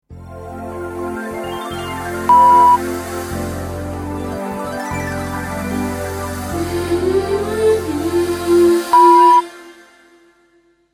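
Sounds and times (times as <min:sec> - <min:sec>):
background music bed: 0:00.1 - 0:10.9
five-tone dreamy sound logo: 0:02.3 - 0:02.9.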